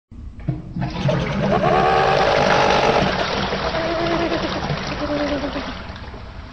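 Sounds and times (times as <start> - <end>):
flushing: 0.7 - 6.5.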